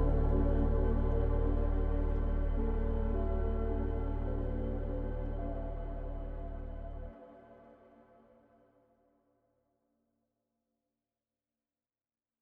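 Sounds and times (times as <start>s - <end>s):
slowed music with reverb: 0.0s - 7.2s.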